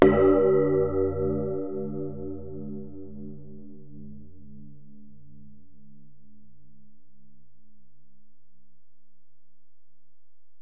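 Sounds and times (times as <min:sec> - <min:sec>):
bell on Alesis DM-PRO drum module: 0:00.0 - 0:02.6.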